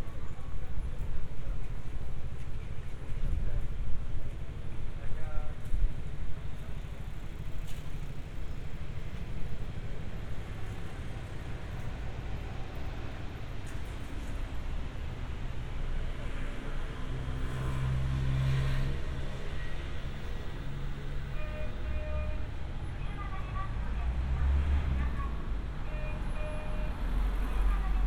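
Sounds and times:
traffic in Funabashi, Chiba, Japan: 0.0s - 28.0s.

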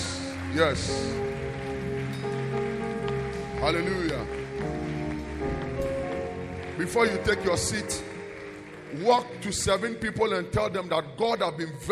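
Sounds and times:
audience clapping hands in praise: 0.0s - 10.9s
speech: 0.6s - 1.3s, 3.6s - 4.8s, 6.8s - 8.1s, 8.9s - 11.9s.

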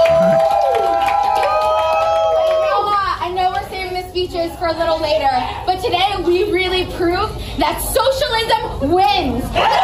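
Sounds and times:
applause: 0.0s - 3.1s
crowd cheering at a victory party: 0.0s - 3.2s, 9.5s - 9.8s
speech: 4.7s - 9.8s.

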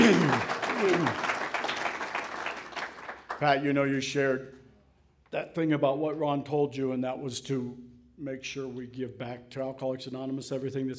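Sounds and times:
audience applause: 0.0s - 3.4s
speech: 3.4s - 4.6s, 5.3s - 10.9s.

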